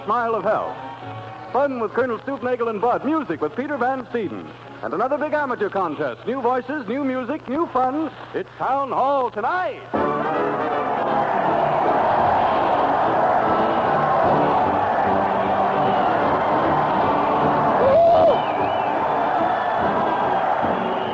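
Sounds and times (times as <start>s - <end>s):
crowd cheering at a parade: 0.0s - 2.0s, 10.0s - 21.1s
speech: 0.0s - 11.3s
rising whoop or whistle: 10.7s - 21.1s.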